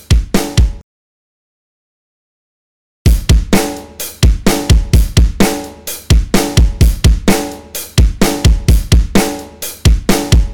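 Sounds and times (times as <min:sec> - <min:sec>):
drums dry mix: 0:00.0 - 0:00.8, 0:03.1 - 0:10.5.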